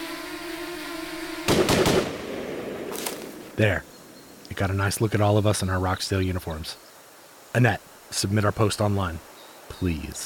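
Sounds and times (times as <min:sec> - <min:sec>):
soldiers firing guns on command: 0:01.5 - 0:03.6
speech: 0:03.6 - 0:03.9, 0:04.5 - 0:06.9, 0:07.6 - 0:10.2.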